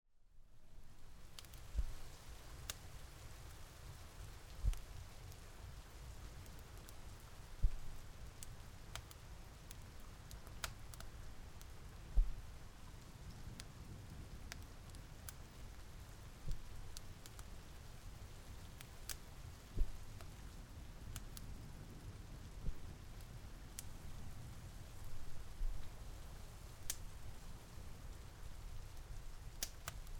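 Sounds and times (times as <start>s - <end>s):
rain: 0.5s - 30.1s.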